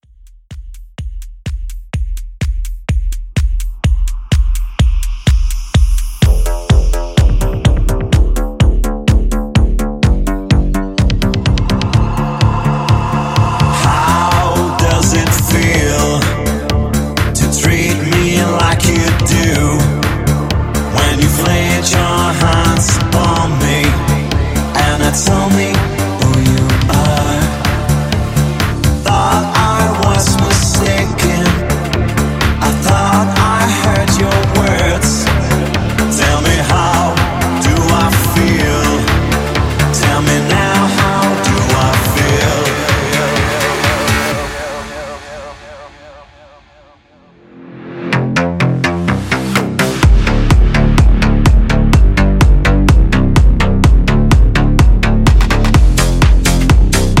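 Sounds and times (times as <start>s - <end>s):
classic electronic dance music: 0.7s - 57.1s.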